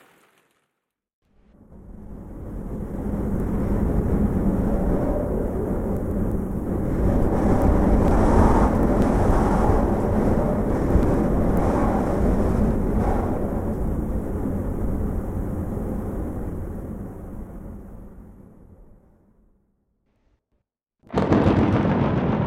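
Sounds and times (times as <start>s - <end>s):
wind: 1.2s - 19.5s
thunderstorm: 1.6s - 18.4s, 21.1s - 22.4s
rain: 2.4s - 17.0s.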